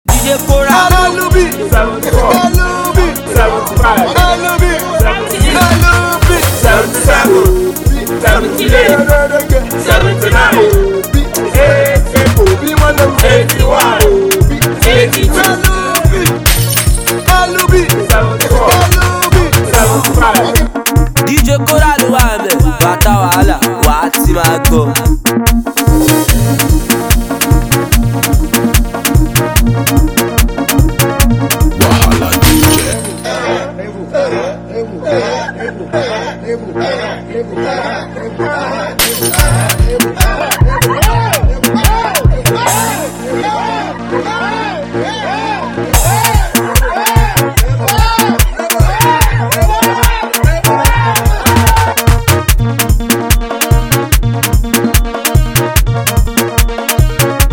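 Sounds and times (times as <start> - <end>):
dance beat: 0.0 - 33.1, 39.3 - 43.2, 45.9 - 57.5
laughter: 1.1 - 5.9, 6.7 - 11.5, 19.6 - 20.7, 33.3 - 52.0.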